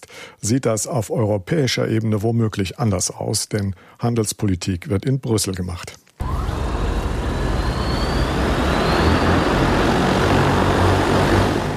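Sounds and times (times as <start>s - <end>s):
speech: 0.4s - 6.4s
Ehang electric air taxi drone flying: 6.2s - 11.7s.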